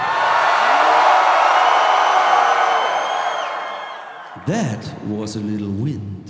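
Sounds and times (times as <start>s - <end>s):
crowd screaming and roaring: 0.0s - 4.4s
speech: 4.5s - 6.2s.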